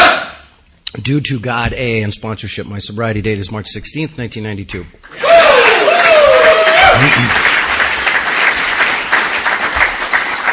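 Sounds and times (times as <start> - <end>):
speech: 1.0 - 5.2, 7.0 - 7.6
room of people applauding at a meeting: 5.0 - 10.5.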